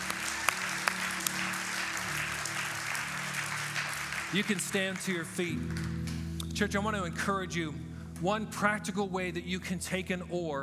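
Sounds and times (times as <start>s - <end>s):
audience applauding: 0.0s - 6.3s
speech: 4.3s - 10.6s.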